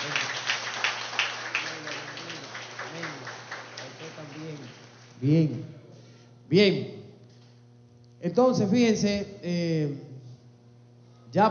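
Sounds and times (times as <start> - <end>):
crowd applauding: 0.0 - 5.2
speech: 5.2 - 5.7, 6.5 - 7.0, 8.2 - 10.0.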